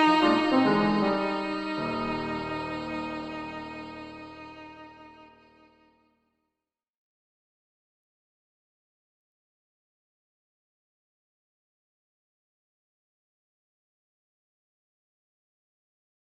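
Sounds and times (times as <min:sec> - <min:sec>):
piano: 0:00.0 - 0:05.9
violin: 0:00.0 - 0:06.2.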